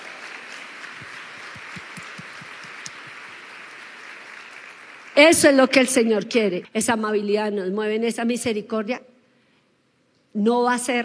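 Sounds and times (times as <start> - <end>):
audience applause: 0.0 - 5.4
speech: 5.2 - 9.1, 10.4 - 11.0.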